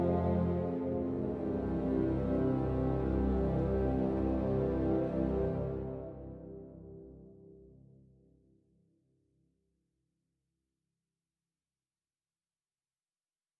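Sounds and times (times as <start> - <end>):
strings: 0.0 - 7.2.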